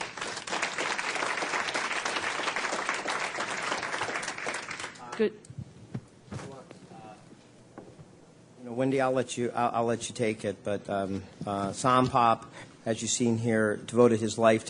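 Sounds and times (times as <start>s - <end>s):
audience at an education event applauding panel speakers: 0.0s - 5.3s
speech: 5.2s - 5.6s, 8.7s - 14.6s.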